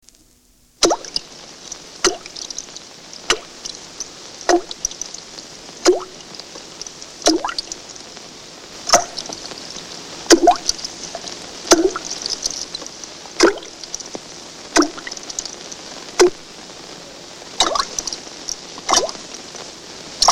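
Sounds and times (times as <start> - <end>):
splashing: 0.8 - 1.3, 2.0 - 3.8, 4.4 - 5.1, 5.8 - 7.9, 8.9 - 9.5, 10.3 - 14.1, 14.7 - 15.6, 16.2 - 16.5, 17.6 - 18.2, 18.8 - 19.2, 20.2 - 20.3
dripping: 0.8 - 8.0, 8.9 - 9.5, 10.3 - 16.5, 17.6 - 19.2, 20.2 - 20.3.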